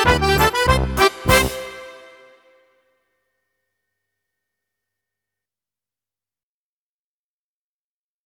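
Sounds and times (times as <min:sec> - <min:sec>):
music for a hand game: 0:00.0 - 0:02.8.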